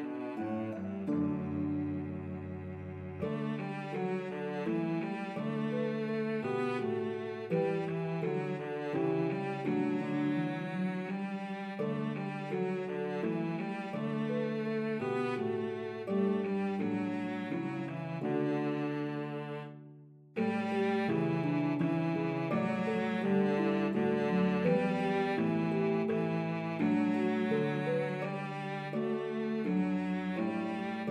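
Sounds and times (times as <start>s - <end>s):
cello playing a French lullaby: 0.0s - 31.1s
harp playing a French lullaby: 0.0s - 31.1s.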